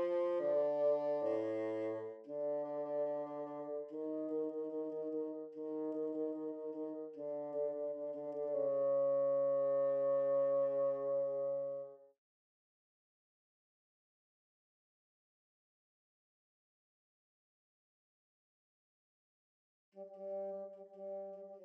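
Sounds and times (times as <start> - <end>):
bassoon: 0.0 - 12.0, 20.0 - 21.6.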